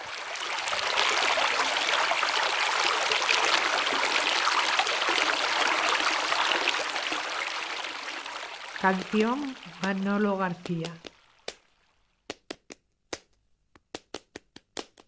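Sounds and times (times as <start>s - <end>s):
river stream flowing: 0.0s - 11.6s
speech: 8.8s - 11.1s.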